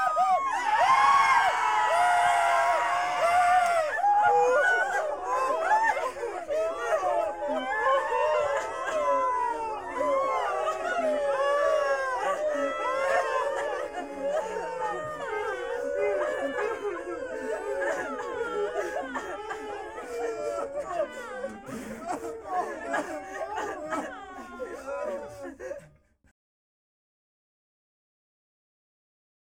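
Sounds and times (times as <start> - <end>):
masses crying: 0.0 - 26.0
masses laughing: 0.0 - 26.0.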